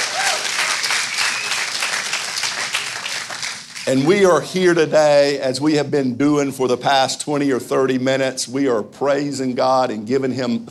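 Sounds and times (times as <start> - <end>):
church audience hand clapping: 0.0 - 4.1
speech: 3.9 - 10.6.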